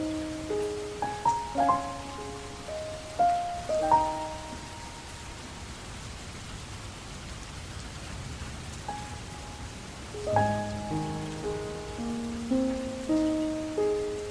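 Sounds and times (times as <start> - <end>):
sad piano song: 0.0 - 5.8, 8.9 - 14.2.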